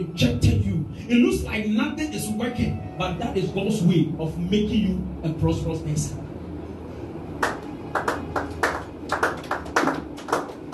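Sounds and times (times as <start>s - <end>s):
speech: 0.1s - 0.5s, 1.1s - 6.3s
scattered audience hand claps: 7.4s - 10.7s.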